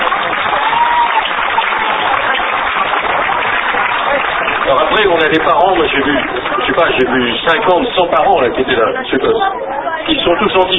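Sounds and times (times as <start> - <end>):
crowd clapping in an ovation for a school director: 0.0 - 8.4
speech: 5.0 - 10.7.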